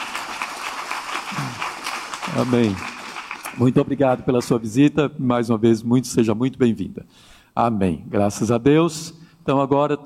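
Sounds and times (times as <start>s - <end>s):
church audience applauding visitors: 0.0s - 4.0s
speech: 2.3s - 2.9s, 3.6s - 10.0s.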